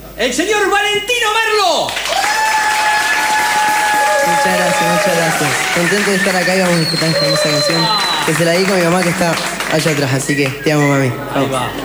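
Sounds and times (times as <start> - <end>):
speech: 0.2 - 2.2, 4.4 - 11.8
loud applause: 1.8 - 10.6.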